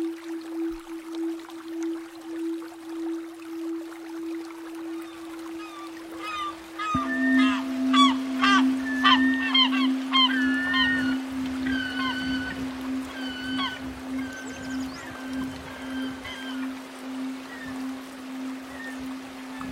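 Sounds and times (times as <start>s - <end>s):
steady low musical drone: 0.0s - 19.7s
gulls calling: 4.8s - 19.7s.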